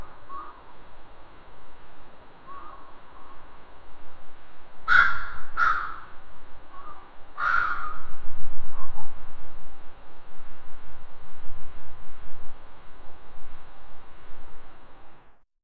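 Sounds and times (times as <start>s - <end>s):
crows in the garden: 0.0s - 0.7s, 2.4s - 3.4s, 4.8s - 8.1s.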